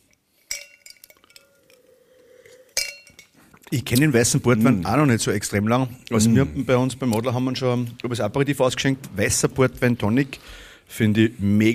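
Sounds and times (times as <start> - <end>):
glasses clinking in a toast: 0.0 - 3.5
speech: 3.7 - 11.7.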